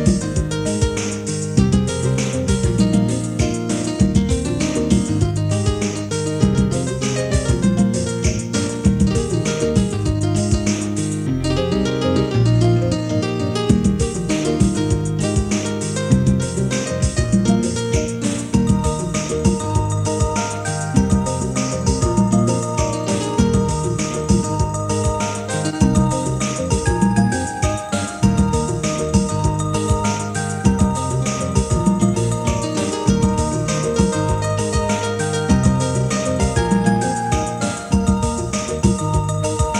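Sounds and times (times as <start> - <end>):
piano ditty: 0.0 - 39.7.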